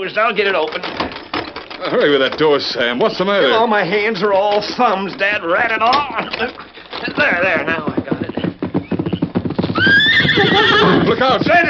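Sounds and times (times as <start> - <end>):
speech: 0.0 - 1.0, 1.8 - 7.9, 10.4 - 11.6
horse hooves galloping: 0.2 - 11.6
horse whinnying: 7.0 - 11.6.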